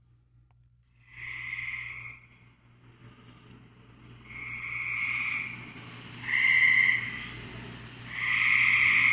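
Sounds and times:
frog calling: 1.0 - 2.3, 4.3 - 7.4, 8.1 - 9.1.

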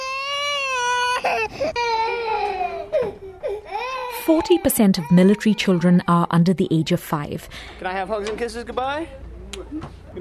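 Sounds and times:
baby crying: 0.0 - 6.2
speech: 1.2 - 3.1, 4.2 - 10.2.

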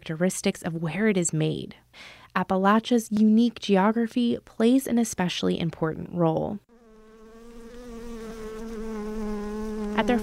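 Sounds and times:
speech: 0.0 - 6.7, 10.0 - 10.2
honeybees buzzing around farm hives in Appalachia: 6.7 - 10.2.

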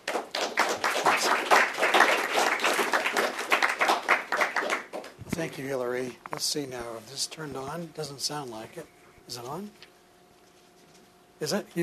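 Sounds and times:
audience applause welcoming a commissioner to speak: 0.0 - 5.2
speech: 5.4 - 9.9, 11.4 - 11.8.

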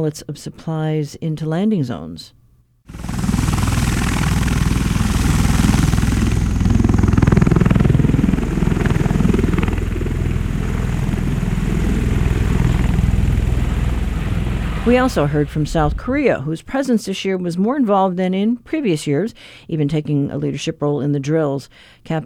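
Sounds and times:
speech: 0.0 - 3.1, 14.9 - 22.2
U.S. Osprey tiltrotor military aircraft flying: 2.9 - 16.3.

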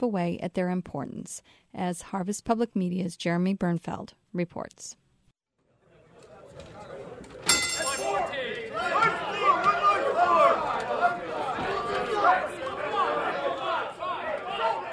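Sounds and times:
speech: 0.0 - 5.0
traders shouting orders in trading pit: 7.8 - 14.9.

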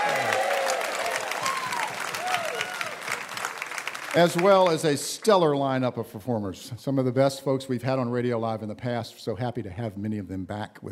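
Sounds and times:
audience applause at a live New Year's evening radio show: 0.0 - 5.2
speech: 4.2 - 10.9.

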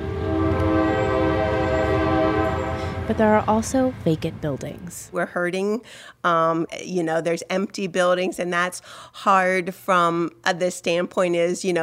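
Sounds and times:
train horn in downtown Coshocton, Ohio: 0.0 - 4.0
passing train rumble on the Main Street railroad: 0.0 - 5.3
speech: 3.1 - 11.8.

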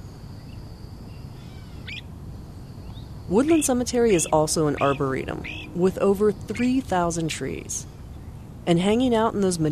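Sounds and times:
birds calling in cemetery oaks, magnolias and shagbark hickories: 2.8 - 8.6
speech: 3.3 - 7.9, 8.7 - 9.7.

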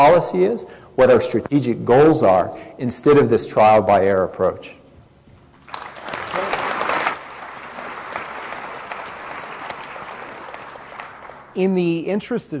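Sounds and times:
speech: 0.0 - 4.8, 11.6 - 12.5
crowd applause: 5.6 - 11.6.

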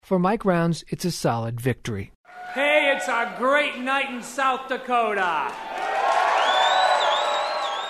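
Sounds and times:
speech: 0.1 - 5.8
jubilant crowd cheering at an election victory speech in South Dakota: 2.3 - 7.8
high whistle: 6.4 - 7.8.

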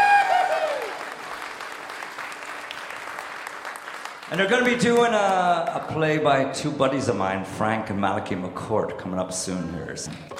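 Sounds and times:
audience applause: 0.0 - 6.0
speech: 4.3 - 10.3.

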